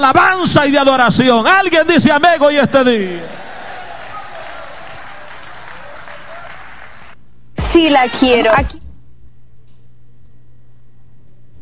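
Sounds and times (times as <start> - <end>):
speech: 0.0 - 3.4, 7.8 - 8.8
audience clapping: 3.2 - 7.2.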